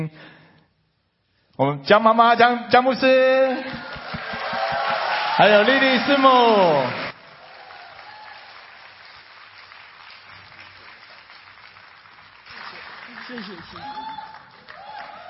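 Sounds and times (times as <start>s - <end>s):
speech: 1.6s - 3.9s, 5.4s - 7.0s, 13.3s - 14.1s
audience applause: 3.6s - 15.2s.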